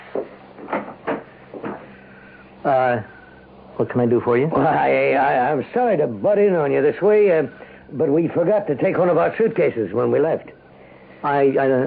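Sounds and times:
dull knocking clunks of a door being opened: 0:00.1 - 0:01.9
speech: 0:02.6 - 0:03.2, 0:03.8 - 0:10.6, 0:11.2 - 0:11.8.

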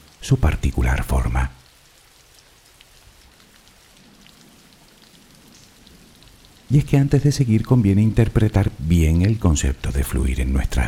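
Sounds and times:
steady rain pattering on surfaces: 0:00.0 - 0:10.8
speech: 0:00.2 - 0:01.6, 0:06.7 - 0:10.8.

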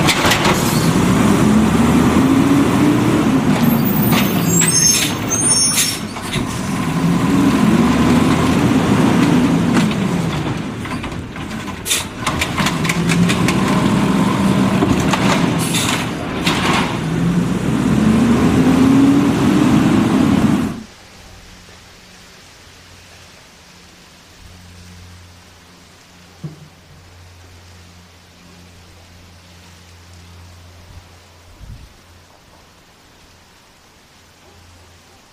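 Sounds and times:
garbage truck engine: 0:00.0 - 0:20.9.

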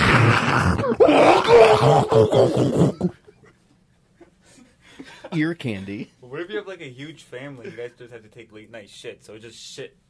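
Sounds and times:
person imitating a loud flushing toilet: 0:00.0 - 0:03.2
speech: 0:00.5 - 0:00.9, 0:01.8 - 0:03.2, 0:05.3 - 0:10.0.

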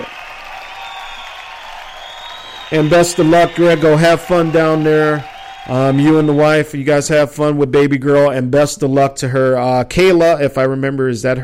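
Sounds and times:
audience applause: 0:00.0 - 0:06.4
speech: 0:02.7 - 0:11.4.

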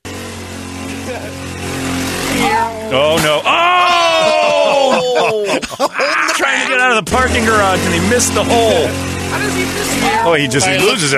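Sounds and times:
scooter engine droning: 0:00.0 - 0:11.1
laughter: 0:00.9 - 0:01.5, 0:03.4 - 0:07.4, 0:08.3 - 0:09.0
speech: 0:01.1 - 0:01.8, 0:02.4 - 0:03.8, 0:05.1 - 0:11.1.

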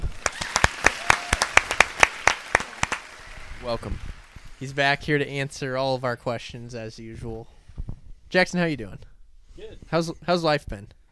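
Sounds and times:
people clapping to welcome a returning guest on a golf talk show: 0:00.0 - 0:04.9
speech: 0:03.6 - 0:07.6, 0:08.3 - 0:11.0.

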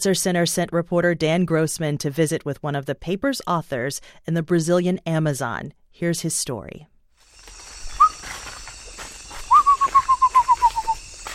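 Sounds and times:
speech: 0:00.0 - 0:06.9
forest insects humming: 0:07.2 - 0:11.3
bird singing in the Amazon jungle: 0:07.4 - 0:11.3.

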